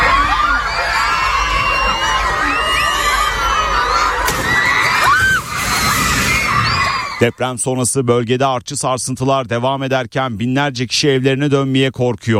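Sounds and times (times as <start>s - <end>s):
schoolchildren at a primary school shouting and screaming in panic during an earthquake: 0.0s - 7.4s
speech: 7.2s - 12.3s.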